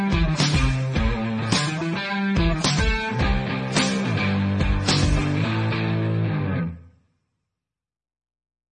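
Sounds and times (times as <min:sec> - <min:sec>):
indie rock music: 0:00.0 - 0:06.9.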